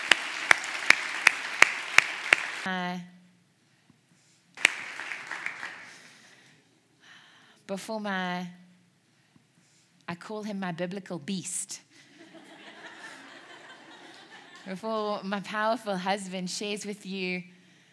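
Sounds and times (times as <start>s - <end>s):
laughter: 0.0s - 2.6s, 4.6s - 6.1s, 12.1s - 14.8s
audience clapping: 0.0s - 2.7s, 4.6s - 6.4s
speech: 2.6s - 3.2s, 7.7s - 8.6s, 10.1s - 11.9s, 14.6s - 17.5s.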